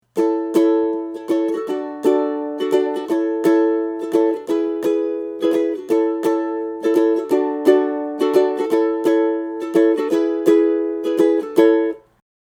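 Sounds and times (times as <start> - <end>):
ukulele strumming: 0.0 - 12.2.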